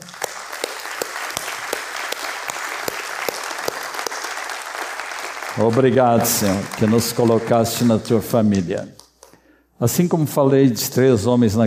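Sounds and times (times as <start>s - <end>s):
audience applause: 0.0s - 8.7s
speech: 5.6s - 9.0s, 9.8s - 11.6s.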